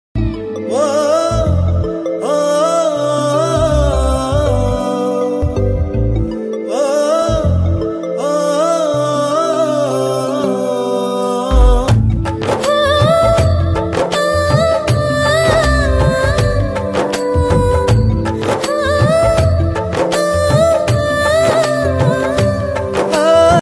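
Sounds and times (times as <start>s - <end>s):
romantic song ringtone: 0.2s - 23.5s.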